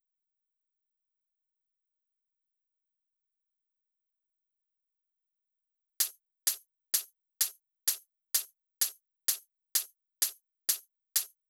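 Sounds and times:
closed hi-hat: 0:06.0 - 0:11.3
drum loop: 0:06.0 - 0:11.3.

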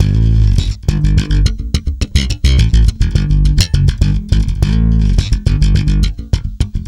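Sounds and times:
tweaky bass: 0:00.0 - 0:06.8.

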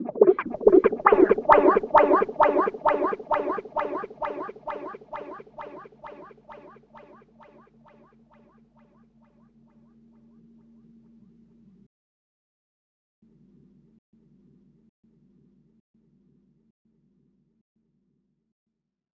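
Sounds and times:
Rhodes electric piano effects: 0:00.0 - 0:06.3.

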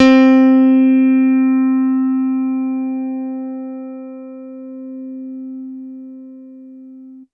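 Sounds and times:
electric piano note C3: 0:00.0 - 0:07.3.

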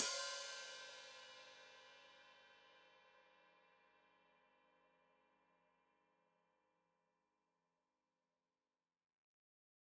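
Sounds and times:
open hi-hat played with foot: 0:00.0 - 0:01.6.

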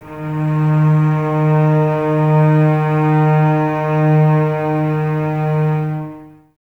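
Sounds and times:
cellos in string ensemble playing D sharp 3 without vibrato: 0:00.0 - 0:06.5.

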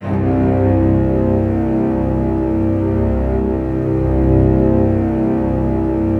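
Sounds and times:
double bass: 0:00.0 - 0:06.1.

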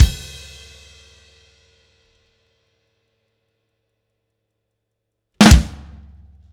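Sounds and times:
indie rock drum beat ending: 0:00.0 - 0:00.7, 0:05.4 - 0:06.1.

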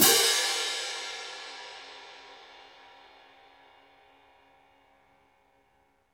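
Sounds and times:
orchestral cymbal crash: 0:00.0 - 0:03.7.

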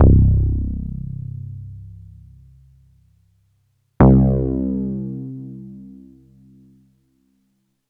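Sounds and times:
electric bass: 0:00.0 - 0:03.0, 0:04.0 - 0:05.0.

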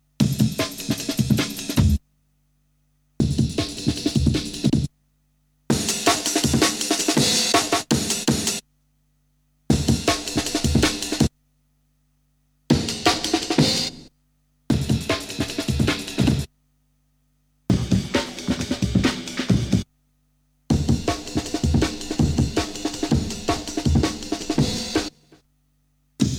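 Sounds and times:
breakbeat drums: 0:00.2 - 0:02.0, 0:03.2 - 0:04.9, 0:05.7 - 0:08.6, 0:09.7 - 0:11.3, 0:12.7 - 0:14.1, 0:14.7 - 0:16.5, 0:17.7 - 0:19.9, 0:20.7 - 0:25.4, 0:26.2 - 0:26.3.

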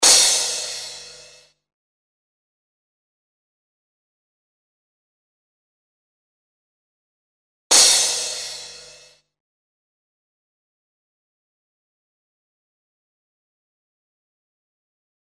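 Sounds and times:
bright crash cymbal: 0:00.0 - 0:01.5, 0:07.7 - 0:09.2.

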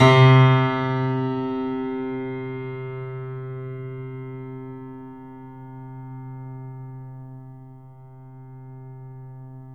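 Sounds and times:
sustained piano: 0:00.0 - 0:09.7.

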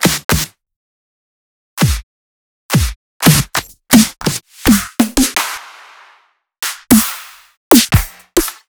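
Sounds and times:
snare drums: 0:02.7 - 0:08.6.

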